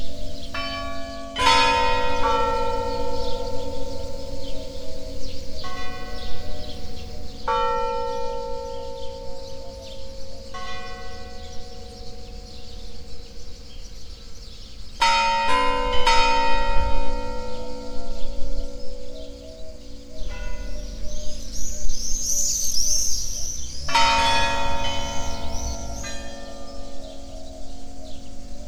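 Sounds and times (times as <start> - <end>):
composition for 12 church bell towers: 0.0 - 14.3, 15.0 - 21.9, 23.8 - 28.6.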